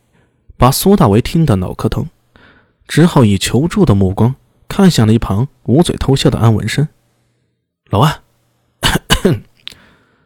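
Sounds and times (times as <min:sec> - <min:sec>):
speech: 0:00.6 - 0:02.2, 0:02.9 - 0:07.0, 0:07.9 - 0:08.2, 0:08.9 - 0:09.5
person coughing: 0:08.8 - 0:09.6.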